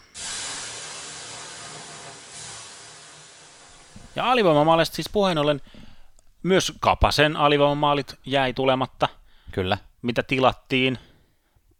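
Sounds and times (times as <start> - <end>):
water splashed onto hot sauna stones hissing: 0.0 - 4.4
speech: 4.2 - 5.8, 6.4 - 11.1.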